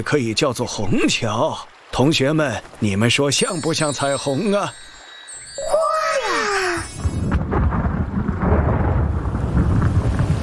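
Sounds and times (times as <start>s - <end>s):
speech: 0.0s - 4.9s
steady dense rain pattering: 0.0s - 5.6s, 6.7s - 10.4s
faint tinkling tones: 3.1s - 7.4s
thunder rumbling: 7.0s - 10.4s.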